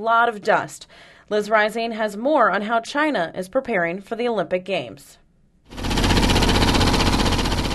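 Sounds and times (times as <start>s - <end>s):
speech: 0.0s - 5.9s
construction noise across Beijing: 5.8s - 7.7s.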